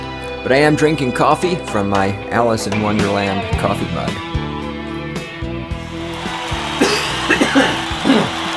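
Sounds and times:
speech: 0.4 - 4.3
person coughing: 6.8 - 8.5.

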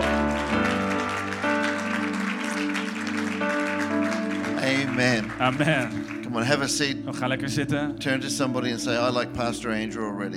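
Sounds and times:
audience clapping: 0.0 - 6.9
speech: 5.0 - 10.3.

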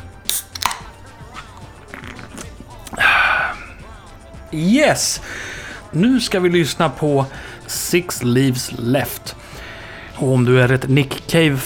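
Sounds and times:
cola can opening with fizz: 0.0 - 0.9
speech: 4.5 - 9.4, 10.2 - 11.6.

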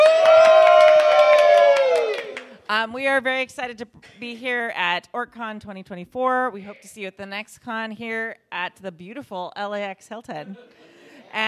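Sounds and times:
loud sustained whoop: 0.0 - 2.5
live audience at OrcCon 2024 at the LAX Hilton cheering and clapping: 0.0 - 2.7
speech: 2.7 - 11.4.

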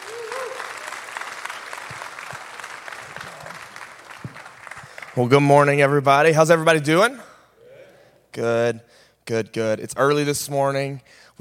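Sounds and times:
faint voices and cheers: 0.0 - 0.9
audience applause: 0.0 - 5.3
speech: 5.2 - 7.3, 8.4 - 11.2.

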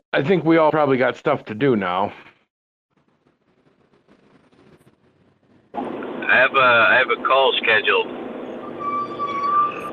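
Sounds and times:
speech: 0.1 - 2.3, 6.3 - 8.2
squealing brakes: 8.4 - 9.9.

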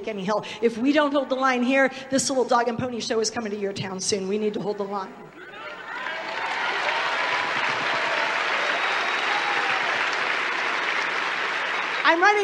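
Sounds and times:
speech: 0.0 - 5.4, 12.1 - 12.4
large audience applause: 5.5 - 12.4.

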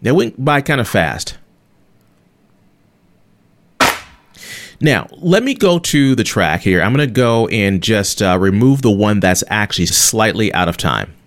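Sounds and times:
speech: 0.0 - 1.4, 4.8 - 11.2
snare drum hit layered with clap sample: 3.8 - 4.2.

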